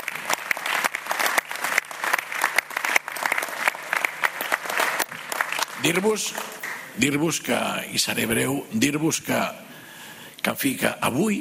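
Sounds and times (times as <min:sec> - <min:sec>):
crowd applauding: 0:00.0 - 0:07.0
speech: 0:05.8 - 0:09.6, 0:10.5 - 0:11.4.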